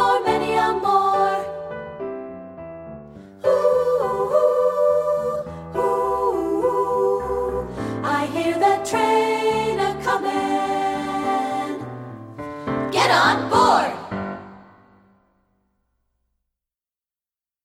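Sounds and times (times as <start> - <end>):
vocals: 0.0 - 2.0, 3.2 - 14.8.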